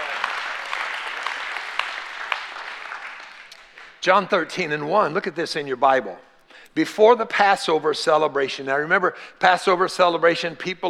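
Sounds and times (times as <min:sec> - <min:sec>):
audience hand clapping: 0:00.0 - 0:04.0
speech: 0:04.0 - 0:10.8.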